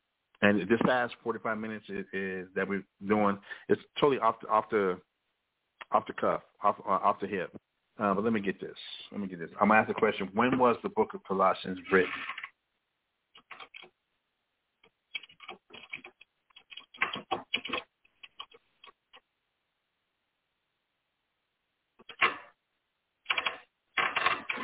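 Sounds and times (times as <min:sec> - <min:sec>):
speech: 0:00.4 - 0:05.1, 0:05.9 - 0:12.4
typing a Google search on a computer keyboard: 0:13.4 - 0:13.9, 0:15.1 - 0:19.0, 0:23.3 - 0:24.6.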